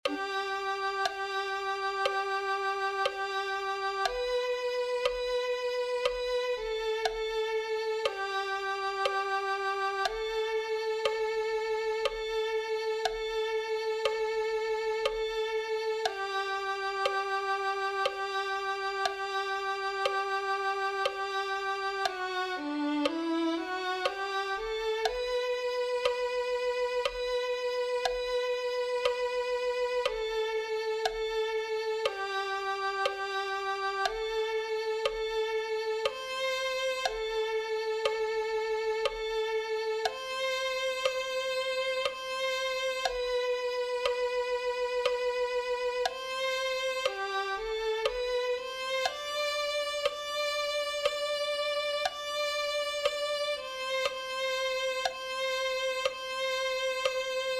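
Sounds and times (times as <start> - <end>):
violin: 0.0 - 57.5.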